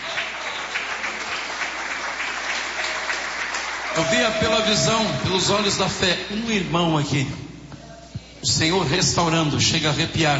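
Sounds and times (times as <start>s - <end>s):
audience clapping: 0.0s - 6.2s
speech: 4.0s - 7.4s, 8.4s - 10.3s.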